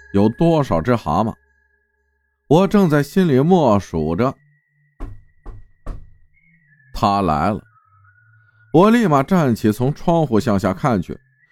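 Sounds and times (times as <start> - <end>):
speech: 0.1 - 1.4, 2.5 - 4.4, 7.0 - 7.7, 8.7 - 11.2
knocking on a door: 5.0 - 6.3.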